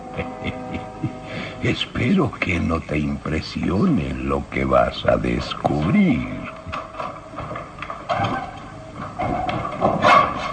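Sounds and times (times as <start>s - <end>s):
laughter: 0.0s - 1.6s
speech: 1.6s - 6.4s
old door hinges creaking: 6.5s - 10.5s.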